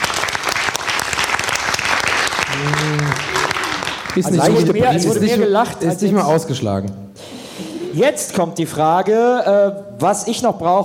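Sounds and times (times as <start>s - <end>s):
audience applause: 0.0s - 5.0s
speech: 4.2s - 7.0s, 8.0s - 10.8s.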